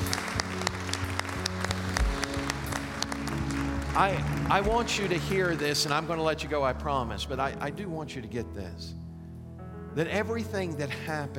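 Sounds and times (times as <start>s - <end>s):
crowd applauding in praise: 0.0s - 6.8s
speech: 4.0s - 9.0s, 10.0s - 11.3s.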